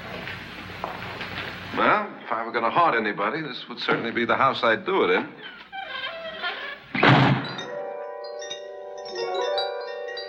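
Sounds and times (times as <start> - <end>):
speech: 1.8 - 5.6
heavy door slamming shut: 6.9 - 7.7
lingering metallic ring: 7.4 - 10.2.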